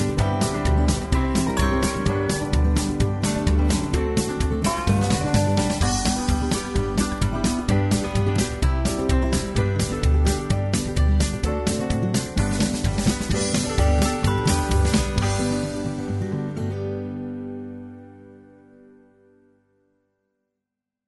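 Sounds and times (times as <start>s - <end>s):
square dance music without melody: 0.0s - 16.8s.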